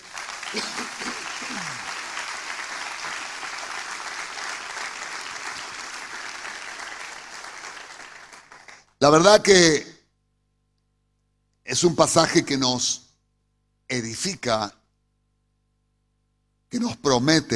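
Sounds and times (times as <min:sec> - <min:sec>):
audience applause: 0:00.0 - 0:08.9
speech: 0:09.0 - 0:09.9, 0:11.8 - 0:13.0, 0:13.9 - 0:14.8, 0:16.7 - 0:17.5.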